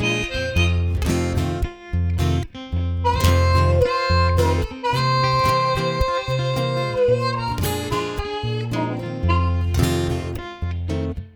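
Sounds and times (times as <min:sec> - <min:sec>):
harmonica playing: 0:00.0 - 0:11.2.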